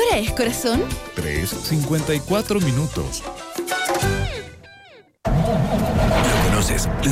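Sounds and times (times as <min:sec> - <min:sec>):
speech: 0:00.2 - 0:03.4, 0:06.6 - 0:07.0
diesel truck engine cranking and starting: 0:05.3 - 0:07.0.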